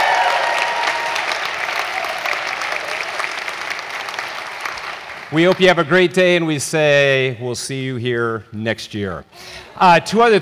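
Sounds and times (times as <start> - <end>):
applause welcoming visiting high school seniors at Hope College: 0.0 - 5.8
speech: 5.3 - 10.4.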